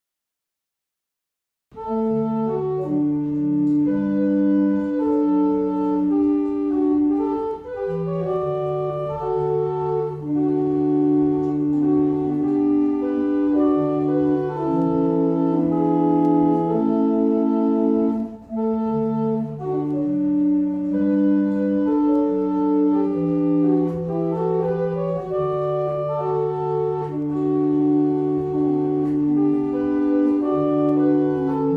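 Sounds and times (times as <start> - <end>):
barrel organs: 1.8 - 31.7.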